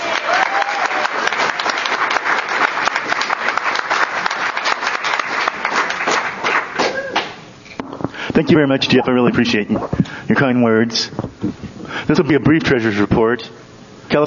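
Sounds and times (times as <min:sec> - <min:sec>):
applause at a California Council of the Blind meeting for the treasurer: 0:00.0 - 0:07.0
speech: 0:08.4 - 0:14.2.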